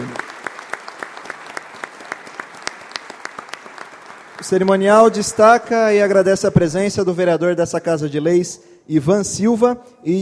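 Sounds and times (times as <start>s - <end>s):
applause: 0.0s - 6.2s
speech: 4.4s - 10.2s.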